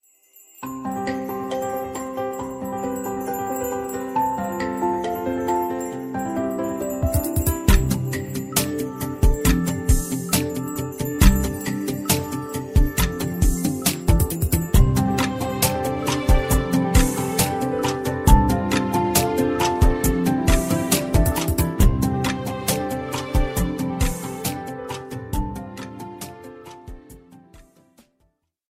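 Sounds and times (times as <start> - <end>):
ringtone music: 0.6 - 27.4.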